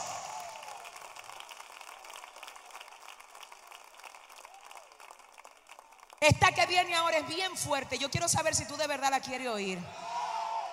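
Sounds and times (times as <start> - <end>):
audience applause: 0.0 - 6.2
speech: 6.2 - 10.1.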